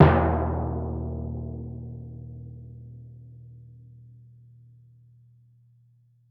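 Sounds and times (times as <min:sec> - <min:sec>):
timpani fortissimo E1: 0:00.0 - 0:02.1.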